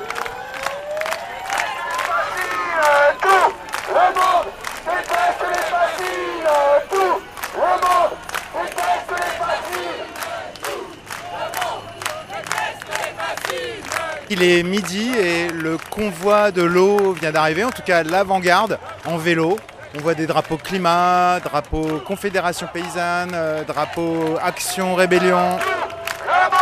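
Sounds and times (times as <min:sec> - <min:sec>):
applause: 0:00.0 - 0:26.5
crowd noise: 0:00.0 - 0:26.5
speech: 0:14.3 - 0:25.9.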